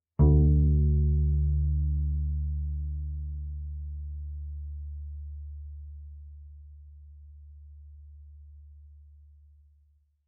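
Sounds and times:
loud double bass pizzicato on the D string: 0:00.2 - 0:06.7.

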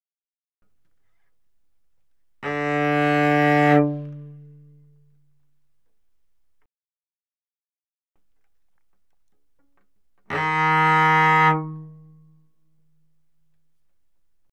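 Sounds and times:
cello bowed fortissimo on the G string: 0:02.4 - 0:05.3, 0:09.8 - 0:12.5.

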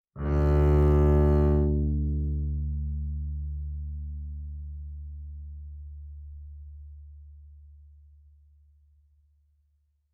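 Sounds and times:
double bass bowed fortissimo on the D string: 0:00.2 - 0:02.9.

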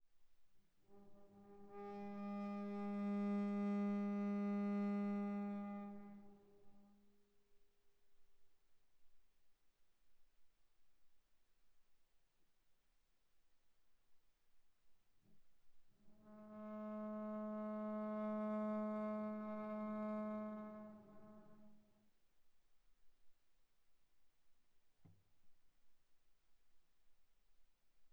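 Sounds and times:
viola bowed on the A string: 0:00.9 - 0:07.1, 0:16.0 - 0:22.0.

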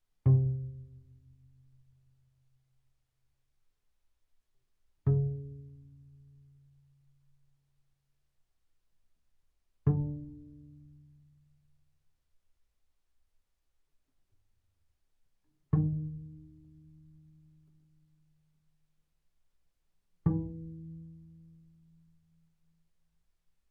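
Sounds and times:
double bass pizzicato on the D string fortissimo: 0:00.3 - 0:01.9, 0:05.1 - 0:06.9, 0:09.9 - 0:11.4, 0:15.6 - 0:18.3, 0:20.3 - 0:22.0.

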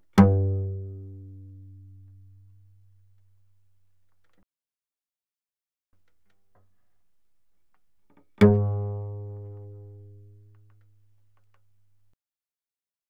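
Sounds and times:
cello pizzicato fortissimo on the C string, C2 to A2: 0:00.0 - 0:03.6, 0:08.2 - 0:12.0.

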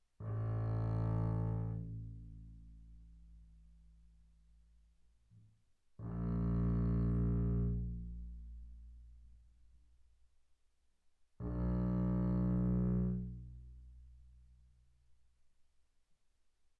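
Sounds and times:
double bass bowed on the A string mezzo forte: 0:00.2 - 0:02.8, 0:06.0 - 0:09.2, 0:11.4 - 0:14.2.

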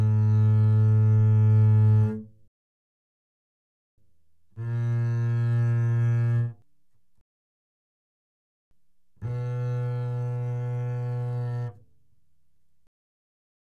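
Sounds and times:
double bass bowed fortissimo on the A string: 0:00.0 - 0:02.3, 0:04.6 - 0:06.6, 0:09.2 - 0:11.9.

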